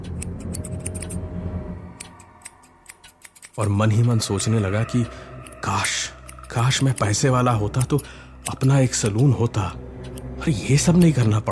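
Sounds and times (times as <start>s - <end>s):
scissors cutting hair: 0.1s - 1.2s, 2.0s - 9.5s, 10.1s - 11.4s
speech: 3.6s - 5.8s, 6.6s - 11.4s.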